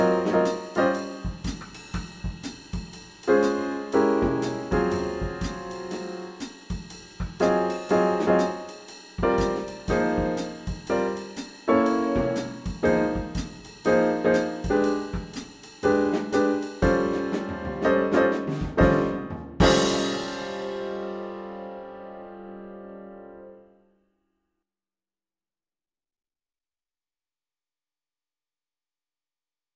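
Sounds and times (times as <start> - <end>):
jazz band playing blues: 0.0 - 2.0, 3.2 - 21.7.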